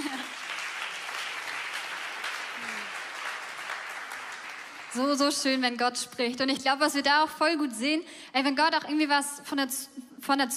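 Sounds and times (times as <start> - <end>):
crowd applause: 0.0 - 5.5
speech: 5.0 - 10.5.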